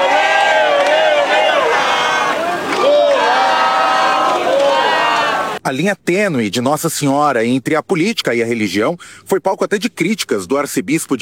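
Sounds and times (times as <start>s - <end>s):
crowd shouting political chants: 0.0s - 5.6s
speech: 5.7s - 11.2s.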